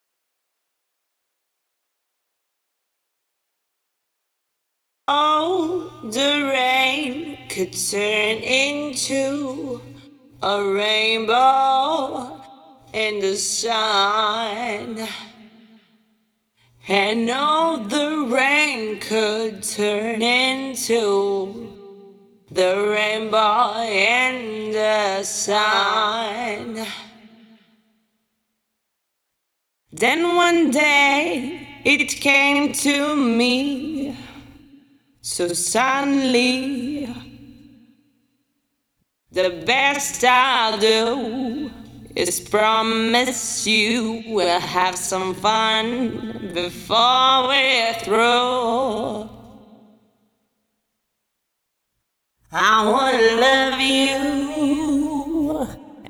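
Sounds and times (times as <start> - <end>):
vocals: 5.1 - 28.1, 29.9 - 38.3, 39.3 - 50.6, 52.4 - 56.0.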